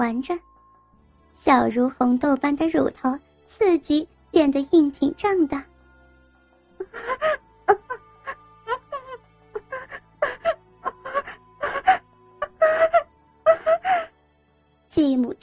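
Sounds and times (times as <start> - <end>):
speech: 0.0 - 0.5, 1.4 - 5.7, 6.8 - 8.0, 15.0 - 15.4
woman moaning: 6.8 - 14.1.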